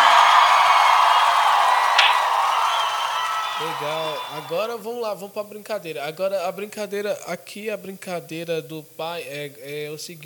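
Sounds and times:
applause: 0:00.0 - 0:04.7
speech: 0:03.8 - 0:10.2.

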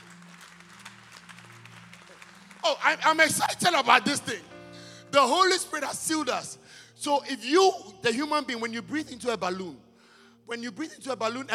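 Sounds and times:
audience clapping in a large room: 0:00.0 - 0:04.5
speech: 0:02.6 - 0:04.5, 0:05.2 - 0:09.8, 0:10.5 - 0:11.5.

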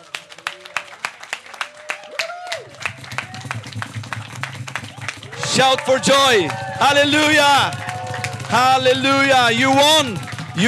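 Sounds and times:
audience clapping hands: 0:00.0 - 0:10.6
speech: 0:05.6 - 0:07.8, 0:08.5 - 0:10.6.

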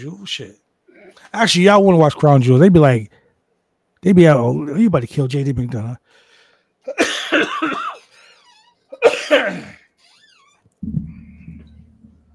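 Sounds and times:
speech: 0:00.0 - 0:00.6, 0:01.2 - 0:03.2, 0:04.0 - 0:06.2, 0:06.8 - 0:07.9, 0:09.0 - 0:09.8
heavy coughing fit: 0:06.9 - 0:10.0
low steady rumbling noise: 0:10.8 - 0:12.3.

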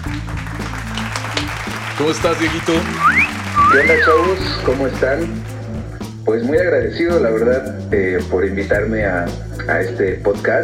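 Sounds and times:
applause: 0:00.0 - 0:06.1
speech: 0:02.0 - 0:05.5, 0:06.3 - 0:10.6.

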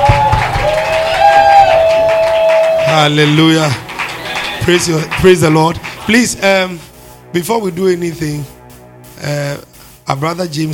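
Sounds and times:
audience shouting and clapping: 0:00.0 - 0:04.7
speech: 0:03.0 - 0:03.8, 0:04.6 - 0:08.6, 0:09.2 - 0:10.7.

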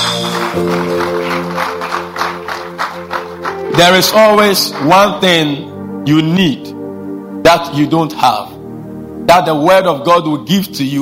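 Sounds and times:
audience clapping: 0:00.0 - 0:05.2
speech: 0:00.6 - 0:01.6, 0:03.8 - 0:06.8, 0:07.4 - 0:08.5, 0:09.3 - 0:11.0.

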